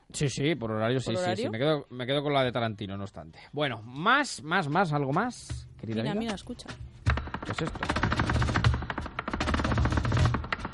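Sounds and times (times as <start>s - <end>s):
speech: 0.1s - 8.6s
rapid flamenco heel-tapping footwork: 4.7s - 10.7s.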